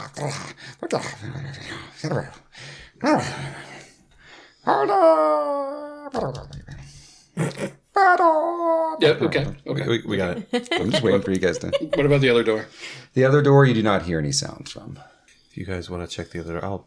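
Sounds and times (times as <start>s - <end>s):
speech: 0.1s - 3.7s, 4.6s - 6.7s, 7.4s - 16.8s
voice imitating a gnoll's whimpering howl: 3.0s - 3.7s, 4.6s - 6.9s, 7.9s - 9.3s
laughter: 7.4s - 7.8s, 10.0s - 12.7s.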